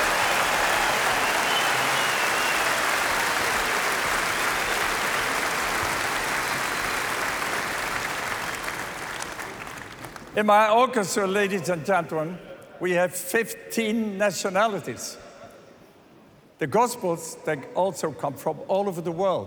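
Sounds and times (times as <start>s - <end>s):
audience applause: 0.0s - 10.4s
speech: 10.4s - 15.2s, 16.6s - 19.4s.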